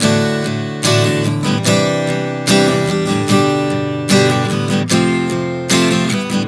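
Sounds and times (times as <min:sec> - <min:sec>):
acoustic guitar chord progression: 0:00.0 - 0:06.4.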